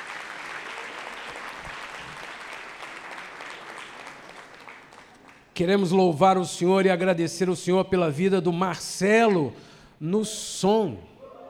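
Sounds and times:
church congregation applauding at a New Year's Eve service: 0.0 - 5.9
speech: 5.6 - 11.1.

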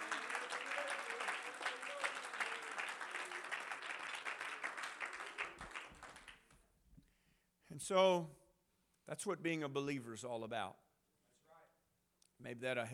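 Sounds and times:
church congregation clapping hands during a sermon: 0.0 - 6.7
speech: 7.8 - 8.4, 9.1 - 10.8, 12.4 - 12.9.

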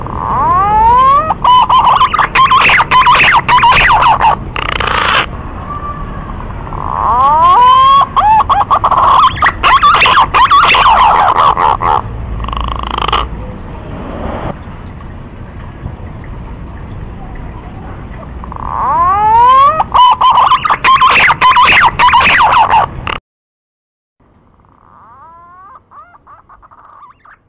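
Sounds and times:
green pigeon lure call of sweeping quavering whistles: 0.3 - 5.3, 6.8 - 13.3, 18.6 - 23.2.

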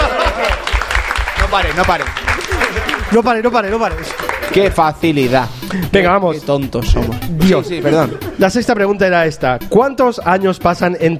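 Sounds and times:
applause: 0.0 - 4.8
laughter: 0.0 - 6.0, 7.3 - 9.1
speech: 1.5 - 11.1.

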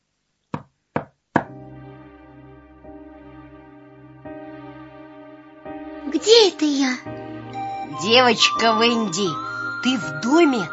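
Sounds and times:
knocking on a door: 0.5 - 1.6
speech: 6.1 - 7.2, 8.0 - 10.7.

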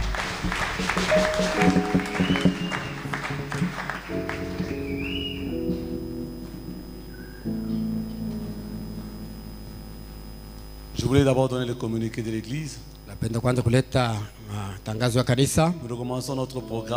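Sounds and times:
church congregation clapping and cheering: 0.0 - 6.0
sustained keyboard chords: 1.0 - 11.1
speech: 11.2 - 16.9.

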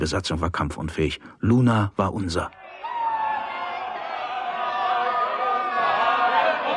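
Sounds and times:
speech: 0.0 - 2.6
crowd cheering and shouting in celebration: 2.6 - 6.6.

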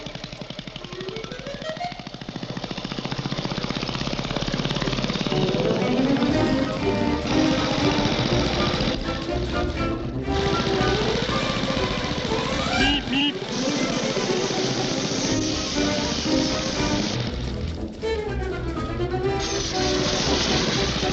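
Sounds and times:
small motorized steamroller engine running: 0.0 - 21.1.

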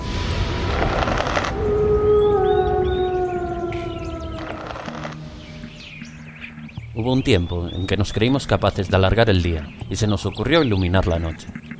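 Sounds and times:
constant rushing hiss: 0.0 - 1.7
lone wolf howling at night: 0.0 - 6.0
speech: 7.0 - 11.7.

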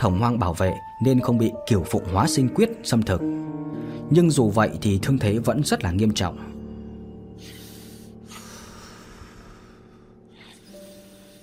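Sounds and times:
speech: 0.0 - 6.6
badly injured man breathing heavily and raggedly in harsh hissing breaths: 6.4 - 11.4.

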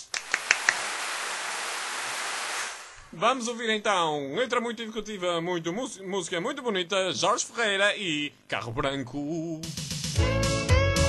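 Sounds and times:
hand claps: 0.0 - 1.0
faint steady hiss: 0.0 - 9.3
speech: 3.2 - 10.4.

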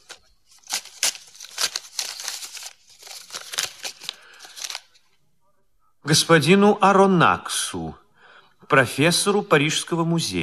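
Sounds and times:
paper packet being unwrapped and opened: 0.0 - 5.0
speech: 6.1 - 8.0, 8.7 - 10.4.

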